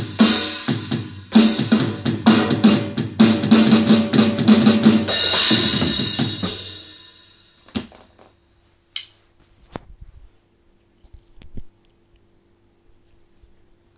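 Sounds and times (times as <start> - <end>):
drums played unskillfully: 0.0 - 7.5.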